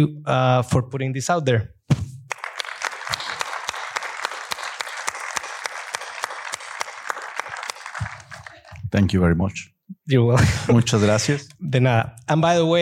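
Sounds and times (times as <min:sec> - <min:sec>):
speech: 0:00.0 - 0:01.8, 0:08.9 - 0:12.8
audience applause for Alejandro Monteverde, director of Sound of Freedom: 0:02.3 - 0:08.8.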